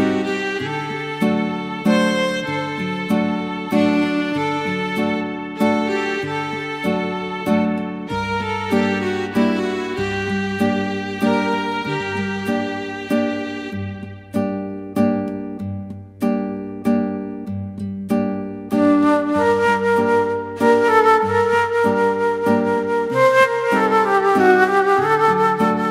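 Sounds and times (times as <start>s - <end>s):
flute: 0.0s - 14.2s, 18.7s - 25.8s
guitar: 0.0s - 25.8s.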